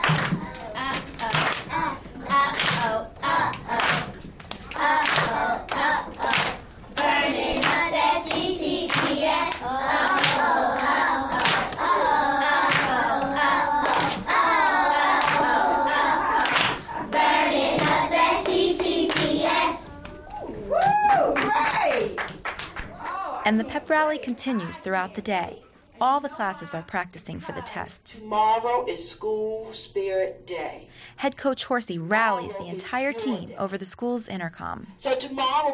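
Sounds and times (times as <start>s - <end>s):
group of children clapping in rhythm: 0.0s - 23.2s
speech: 23.5s - 35.7s.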